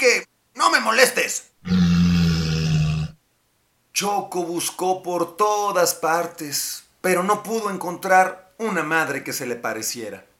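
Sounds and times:
speech: 0:00.9 - 0:01.8, 0:04.0 - 0:10.3
walrus growling: 0:01.6 - 0:03.2.

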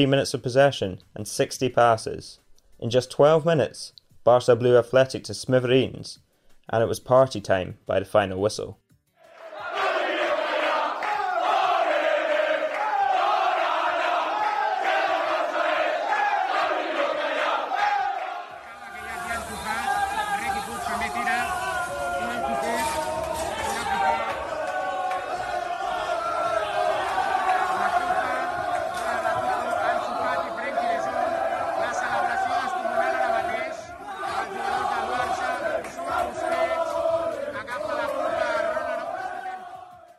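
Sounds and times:
speech: 0:00.0 - 0:08.8
football squad chanting in a dressing room: 0:09.2 - 0:40.1.

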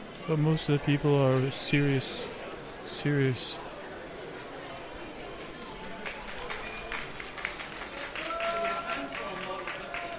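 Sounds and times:
speech: 0:00.3 - 0:03.6
room full of people applauding for the model: 0:05.2 - 0:10.1.

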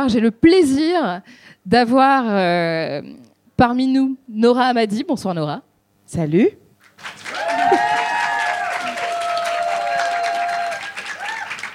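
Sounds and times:
speech: 0:00.0 - 0:07.8
audience applause: 0:06.9 - 0:11.7
cheers and whoops: 0:07.2 - 0:11.7.

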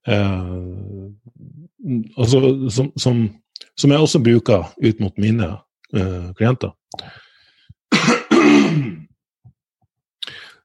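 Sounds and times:
speech: 0:00.0 - 0:00.7, 0:02.1 - 0:07.2
throat clearing: 0:08.0 - 0:09.1.

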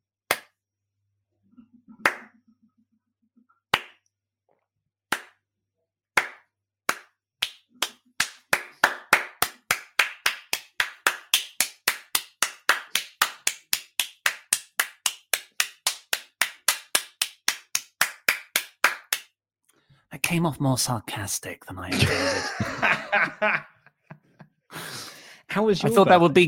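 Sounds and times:
slow clap: 0:00.3 - 0:00.6, 0:01.9 - 0:02.4, 0:03.7 - 0:04.0, 0:05.1 - 0:05.4, 0:06.2 - 0:19.3
speech: 0:20.3 - 0:23.7, 0:25.6 - 0:26.4
laughter: 0:21.9 - 0:25.0, 0:25.6 - 0:26.4.

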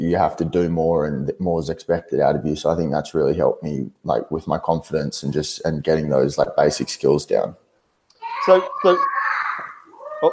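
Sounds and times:
speech: 0:00.1 - 0:07.6, 0:08.4 - 0:09.2
child yelling: 0:08.2 - 0:10.3.

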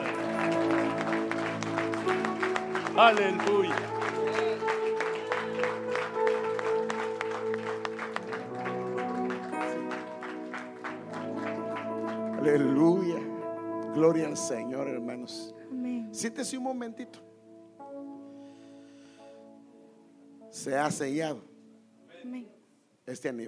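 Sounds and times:
audience applauding: 0:00.0 - 0:13.4
speech: 0:03.0 - 0:04.0, 0:14.1 - 0:15.6, 0:16.2 - 0:17.3, 0:20.6 - 0:21.5, 0:22.2 - 0:23.4.

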